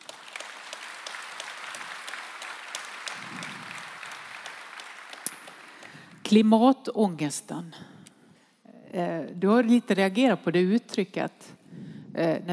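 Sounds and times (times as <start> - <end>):
audience applause: 0.0 - 6.2
speech: 6.3 - 8.0, 9.0 - 11.6, 12.2 - 12.5.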